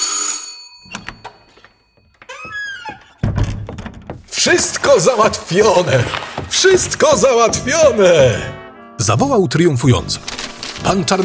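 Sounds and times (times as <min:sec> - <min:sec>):
doorbell ringing: 0:00.0 - 0:03.1
thuds and knocks: 0:02.2 - 0:07.6
speech: 0:04.4 - 0:11.2.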